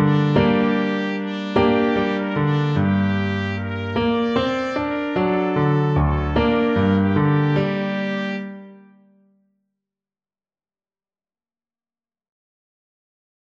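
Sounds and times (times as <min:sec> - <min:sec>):
bugle horn: 0:00.0 - 0:08.8.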